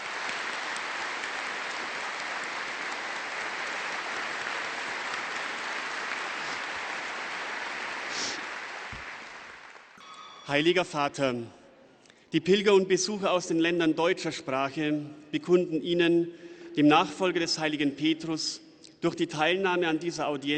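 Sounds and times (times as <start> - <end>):
large crowd applause: 0.0 - 10.0
speech: 10.5 - 11.6, 12.3 - 20.5.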